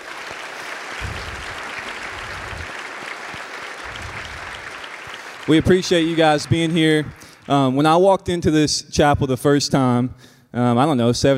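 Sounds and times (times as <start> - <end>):
applause for prospective student athletes in a chapel: 0.0 - 7.8
speech: 5.5 - 11.3.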